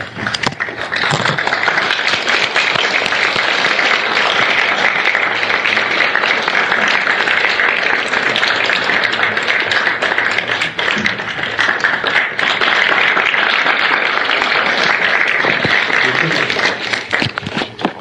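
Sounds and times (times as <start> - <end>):
large audience applause welcoming a lecturer: 0.0 - 17.9.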